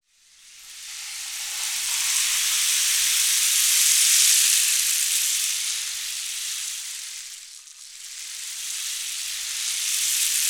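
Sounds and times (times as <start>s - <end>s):
rain stick: 0.9s - 10.4s.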